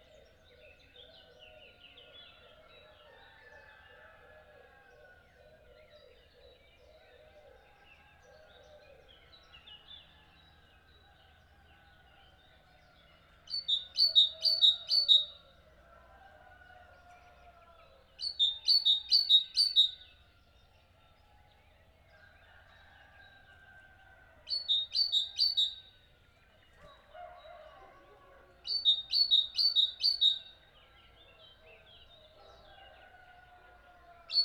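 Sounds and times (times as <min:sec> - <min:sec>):
bird chirps: 0:13.5 - 0:15.4, 0:24.5 - 0:25.9, 0:28.7 - 0:30.6.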